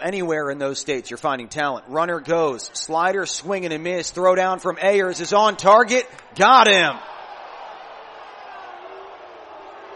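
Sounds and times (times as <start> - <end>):
speech: 0.0 - 7.1
large stadium crowd booing at a call: 5.1 - 9.9.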